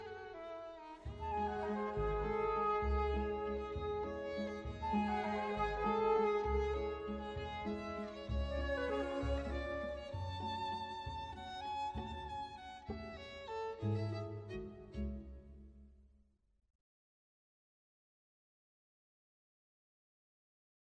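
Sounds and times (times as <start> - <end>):
waltz music: 0.0 - 15.7.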